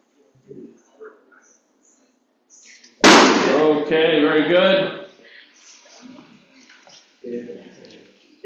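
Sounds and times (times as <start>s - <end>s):
balloon popping: 3.0s - 3.6s
speech: 3.7s - 5.0s.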